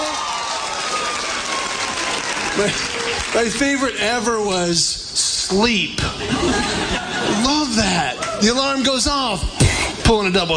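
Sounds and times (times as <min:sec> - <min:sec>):
audience clapping hands: 0:00.0 - 0:04.5
speech: 0:02.6 - 0:10.5
laughter: 0:06.0 - 0:08.5.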